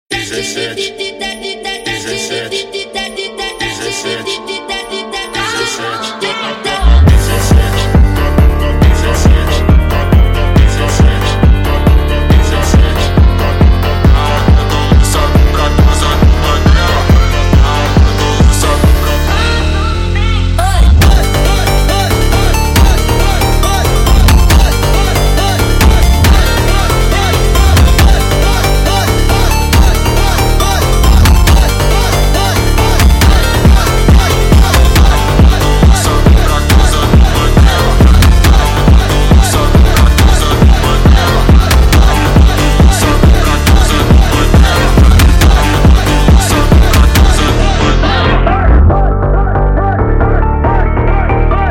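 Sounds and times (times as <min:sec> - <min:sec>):
sped up funk music: 0:04.8 - 0:51.6.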